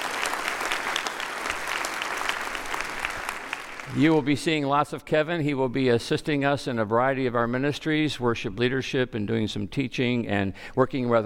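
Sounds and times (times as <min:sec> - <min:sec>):
audience applause: 0:00.0 - 0:04.3
speech: 0:03.9 - 0:11.2.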